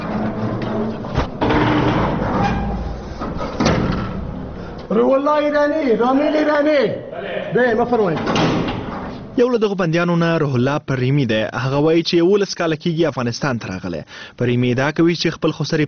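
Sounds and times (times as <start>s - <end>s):
metallic knocks and scrapes of a prison door: 0.0s - 4.4s, 8.1s - 9.3s
heavy iron prison door clanking as a guard opens it at Herat prison: 0.0s - 4.6s, 7.9s - 9.3s
speech: 5.0s - 8.5s, 9.4s - 15.8s.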